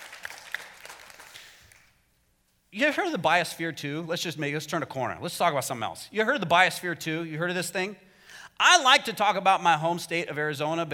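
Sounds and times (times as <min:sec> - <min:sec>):
audience clapping: 0:00.0 - 0:01.9
speech: 0:02.7 - 0:10.9.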